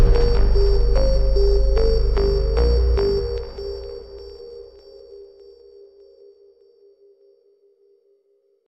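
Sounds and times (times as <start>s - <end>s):
super slowed music with reverb: 0.0s - 6.2s.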